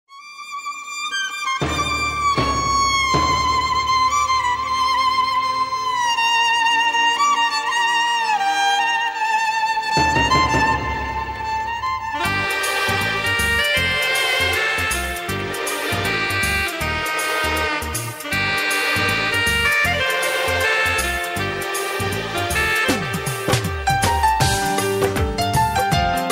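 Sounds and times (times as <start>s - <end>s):
violin: 0.1s - 26.3s.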